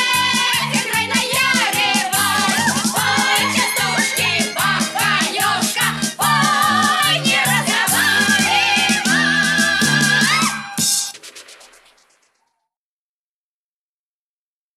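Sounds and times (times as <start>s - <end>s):
chastushki comic folk ditties sung as Baba Yaga witches: 0.0s - 11.0s.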